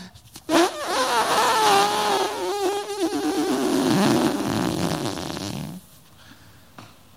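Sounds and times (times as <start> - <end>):
balloon deflating: 0.3 - 5.8.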